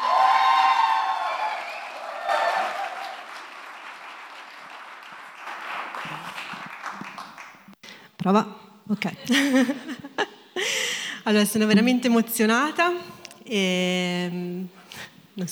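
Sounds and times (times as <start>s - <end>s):
high tonal cheers and whoops: 0.0s - 3.7s
audience applauding: 0.0s - 7.8s
speech: 8.2s - 10.0s, 11.2s - 15.4s
laughter: 9.2s - 10.7s.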